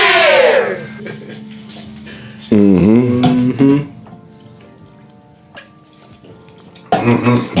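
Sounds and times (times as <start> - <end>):
person gulping a drink: 2.5 - 4.0, 6.9 - 7.5.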